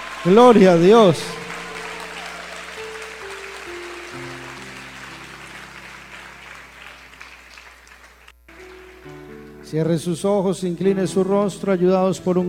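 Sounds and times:
audience applause: 0.0 - 9.8
sustained keyboard or organ chords: 0.0 - 12.4
speech: 0.2 - 1.4, 9.7 - 12.4.

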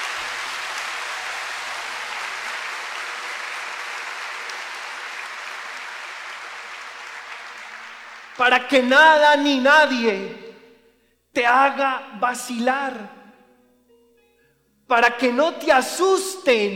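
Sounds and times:
audience applause: 0.0 - 8.7
speech: 8.4 - 10.4, 11.4 - 13.2, 14.9 - 16.7.

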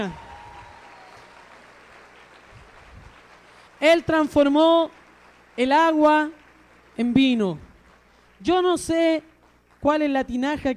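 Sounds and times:
speech: 0.0 - 0.2, 3.8 - 5.0, 5.6 - 6.4, 7.0 - 7.7, 8.4 - 10.7
crowd applauding in a large room: 0.0 - 9.8.

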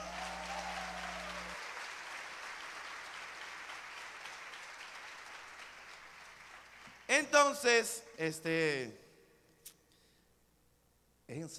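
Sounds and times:
low hum: 0.0 - 1.6
crowd applause: 0.0 - 7.1
speech: 7.1 - 9.0, 11.3 - 11.5.

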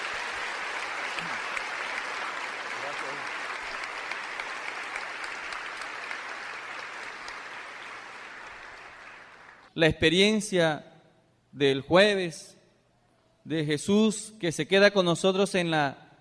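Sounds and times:
audience applause: 0.0 - 9.7
speech: 9.8 - 10.9, 11.6 - 12.6, 13.5 - 16.0.

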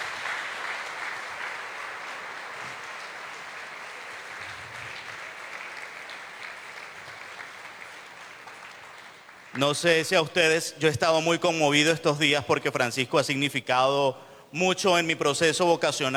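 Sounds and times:
audience applause: 0.0 - 9.8
speech: 9.6 - 16.1.

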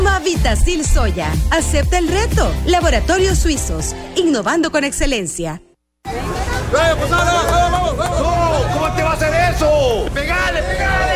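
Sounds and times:
speech: 0.4 - 11.1
football crowd shouting and cheering: 6.1 - 11.1.

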